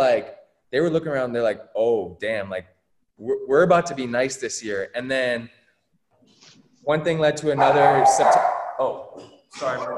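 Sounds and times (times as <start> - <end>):
speech: 0.0 - 5.6, 6.8 - 9.9
dogs barking in the background: 7.6 - 9.1.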